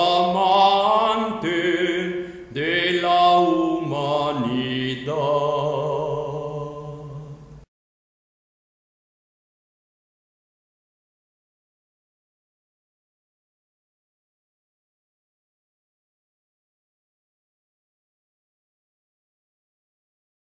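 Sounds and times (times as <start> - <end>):
Byzantine chant singing: 0.0 - 7.5.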